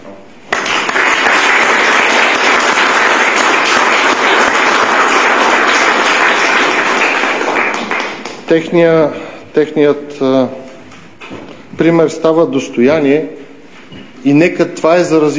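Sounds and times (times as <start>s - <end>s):
audience applause: 0.5s - 8.5s
speech: 8.5s - 10.6s, 11.8s - 13.4s, 14.2s - 15.3s.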